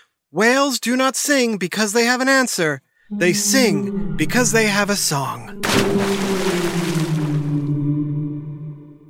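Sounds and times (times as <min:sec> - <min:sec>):
speech: 0:00.3 - 0:06.1
boat arriving on water: 0:03.3 - 0:08.8.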